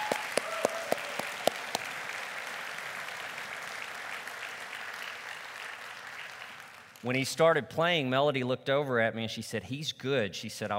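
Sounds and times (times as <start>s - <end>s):
round of applause: 0.0s - 7.1s
speech: 7.0s - 10.7s.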